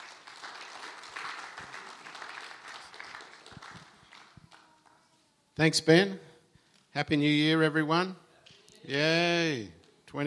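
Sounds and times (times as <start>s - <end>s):
audience applauding at a church service: 0.0s - 4.9s
speech: 5.6s - 6.3s, 7.0s - 8.2s, 8.8s - 10.2s.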